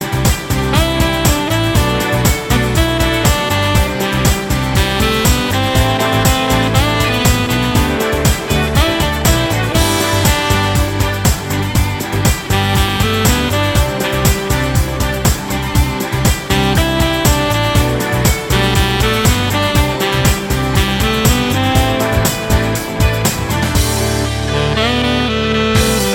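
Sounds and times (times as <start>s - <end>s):
instrumental music: 0.0s - 26.1s.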